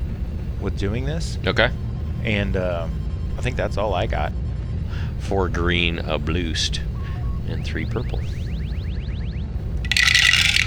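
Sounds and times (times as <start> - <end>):
dice clattering down through a dice tower: 0.0 - 4.3, 4.9 - 8.8, 9.6 - 10.6
speech: 0.6 - 4.4, 5.2 - 6.9, 7.5 - 8.4.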